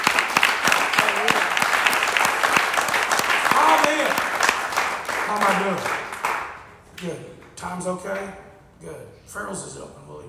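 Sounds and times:
audience applause: 0.0s - 6.6s
speech: 5.4s - 6.0s, 7.0s - 10.2s.

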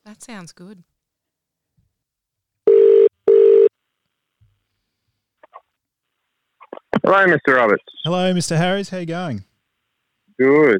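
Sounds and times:
speech: 0.1s - 0.9s, 7.1s - 9.5s, 10.4s - 10.7s
telephone ringback tone: 2.7s - 3.7s.

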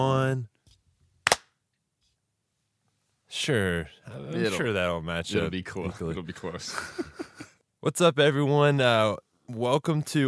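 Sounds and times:
speech: 0.0s - 0.6s, 3.3s - 10.2s
single hand clap for audio sync: 1.2s - 1.5s
laughter: 5.4s - 7.6s.

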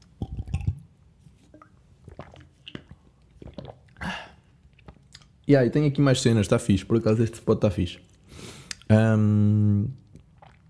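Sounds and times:
person gulping a protein shake: 0.0s - 5.4s, 9.9s - 10.6s
speech: 5.5s - 8.1s, 8.9s - 10.0s.

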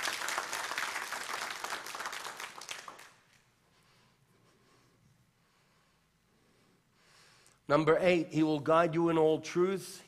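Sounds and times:
audience clapping: 0.0s - 3.4s
speech: 7.7s - 10.0s.

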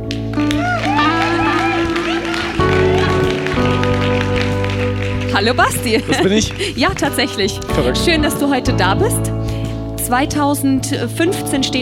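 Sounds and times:
applause: 0.0s - 8.1s
laughter: 0.6s - 4.0s, 5.4s - 8.2s
speech: 5.4s - 9.4s, 10.1s - 11.8s.

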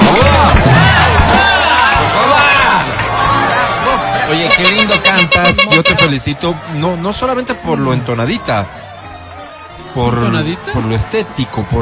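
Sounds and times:
crowd applauding and cheering: 0.0s - 11.8s
speech: 4.6s - 8.8s, 9.8s - 11.8s.

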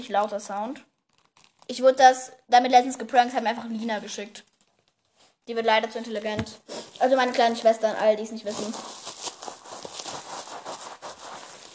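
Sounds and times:
speech: 0.0s - 0.9s, 1.7s - 4.5s, 5.5s - 9.0s
crinkling foil: 1.1s - 1.8s, 6.8s - 11.7s.

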